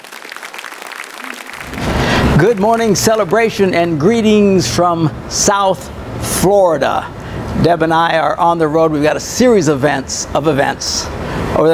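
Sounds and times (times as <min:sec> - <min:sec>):
crowd applauding: 0:00.0 - 0:04.0
speech: 0:01.7 - 0:11.7.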